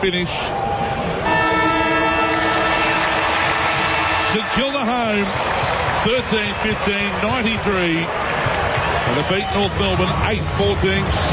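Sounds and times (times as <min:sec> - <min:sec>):
speech: 0:00.0 - 0:01.4, 0:04.3 - 0:08.4, 0:09.0 - 0:11.3
crowd roar: 0:00.4 - 0:11.3
final siren ending a football match: 0:01.2 - 0:04.4.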